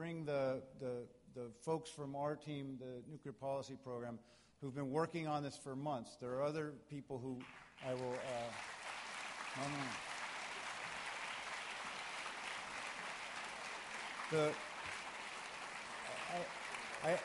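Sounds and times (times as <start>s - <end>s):
speech: 0.0s - 8.8s, 9.6s - 10.1s, 14.3s - 14.7s, 16.3s - 17.2s
audience applause: 7.4s - 17.2s.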